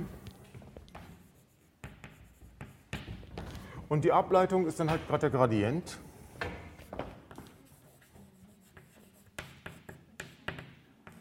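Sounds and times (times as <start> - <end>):
handwriting during a mathematics lecture: 0.8 - 3.1, 7.3 - 11.1
speech: 3.9 - 6.1.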